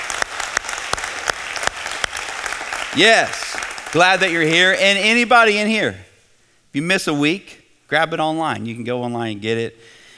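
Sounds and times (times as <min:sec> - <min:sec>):
audience applause at a church service in San Marcos welcoming online viewers: 0:00.0 - 0:05.0
speech: 0:02.9 - 0:06.0, 0:06.8 - 0:10.0.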